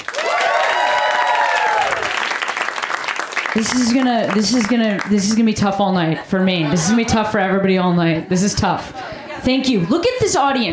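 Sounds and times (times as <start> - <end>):
whoops and cheers: 0.0 - 2.4
audience clapping for comedians: 0.0 - 5.5
speech: 3.6 - 10.7.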